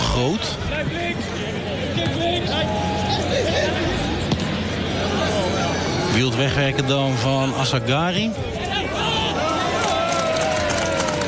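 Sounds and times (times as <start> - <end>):
crowd murmur: 0.0 - 11.2
speech: 0.2 - 4.0, 6.1 - 8.8
spectators along the sidelines clapping: 9.7 - 11.2.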